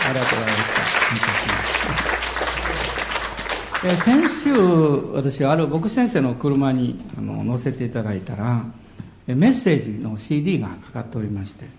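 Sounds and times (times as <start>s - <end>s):
room full of people applauding: 0.0s - 5.0s
speech: 0.1s - 2.5s, 3.8s - 11.7s.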